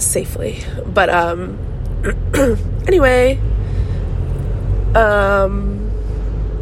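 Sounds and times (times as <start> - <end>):
rumble of the car the listener is riding in: 0.0 - 6.5
speech: 0.1 - 3.6, 4.9 - 5.8.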